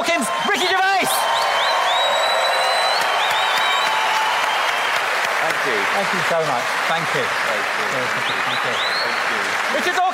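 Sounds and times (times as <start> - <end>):
large audience applause: 0.0 - 10.1
high whistles: 1.3 - 5.0
speech: 6.0 - 10.1.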